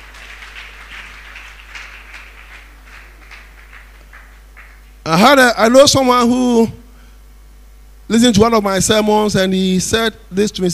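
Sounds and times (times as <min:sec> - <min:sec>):
audience clapping: 0:00.0 - 0:05.0
speech: 0:05.1 - 0:06.8, 0:08.1 - 0:10.7.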